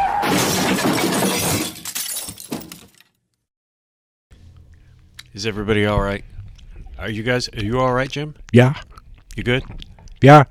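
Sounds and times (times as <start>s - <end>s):
truck crashing with glass shattering: 0.0s - 3.1s
faint low rumbling: 4.3s - 10.4s
speech: 5.4s - 6.3s, 7.0s - 10.4s.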